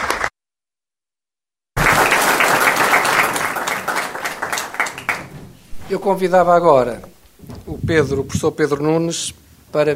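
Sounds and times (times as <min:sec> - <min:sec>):
round of applause: 0:00.0 - 0:00.3, 0:01.8 - 0:05.6
speech: 0:05.9 - 0:07.1, 0:07.7 - 0:09.9.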